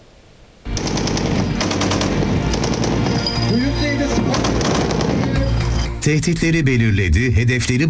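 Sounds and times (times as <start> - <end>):
Tolga close-range air defence system test firing in Konya: 0.7 - 5.8
speech: 6.0 - 7.8.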